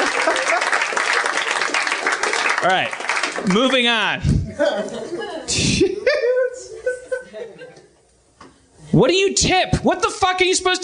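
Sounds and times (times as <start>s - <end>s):
laughter: 0.0s - 1.0s, 4.4s - 8.0s
applause: 0.0s - 3.9s
speech: 2.6s - 6.2s, 9.0s - 10.8s.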